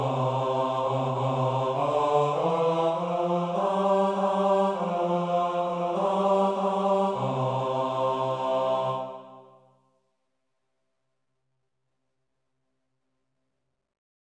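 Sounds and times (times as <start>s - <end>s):
bass voices in a choir: 0.0s - 9.6s.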